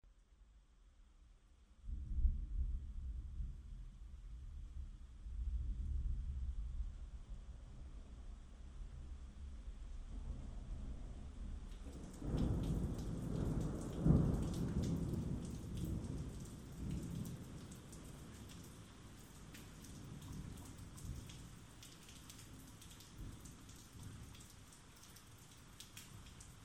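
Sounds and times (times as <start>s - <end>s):
rain: 0.9s - 26.6s
thunderstorm: 1.8s - 21.6s.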